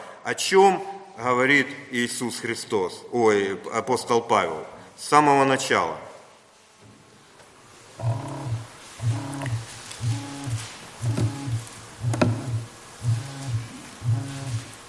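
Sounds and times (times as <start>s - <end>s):
speech: 0.3s - 6.1s, 8.0s - 8.2s
mobile phone vibrating buzz: 8.0s - 14.8s.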